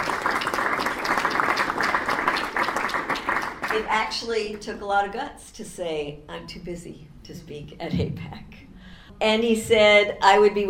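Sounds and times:
audience applause: 0:00.0 - 0:03.8
speech: 0:03.8 - 0:08.5, 0:09.2 - 0:10.6.

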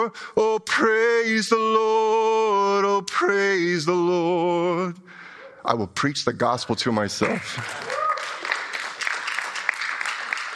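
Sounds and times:
speech: 0:00.0 - 0:08.0
audience clapping hands: 0:07.2 - 0:10.5.

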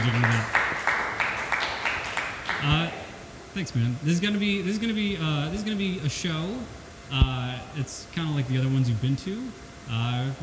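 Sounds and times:
speech: 0:00.0 - 0:00.6, 0:02.6 - 0:03.0, 0:03.6 - 0:10.4
crowd, audience clapping: 0:00.0 - 0:02.9.

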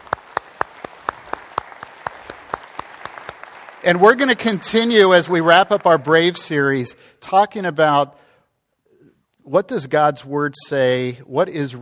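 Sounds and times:
audience applause: 0:00.0 - 0:06.3
speech: 0:03.8 - 0:08.2, 0:09.5 - 0:11.8.

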